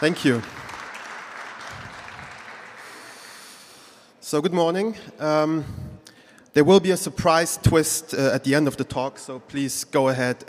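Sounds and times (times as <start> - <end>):
speech: 0.0 - 0.6, 4.3 - 5.8, 6.6 - 10.4
audience clapping for speaker: 0.0 - 3.6.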